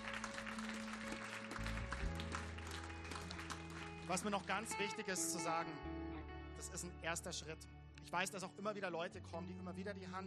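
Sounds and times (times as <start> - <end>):
audience applause: 0.0 - 4.8
speech: 4.1 - 6.0, 6.6 - 10.2.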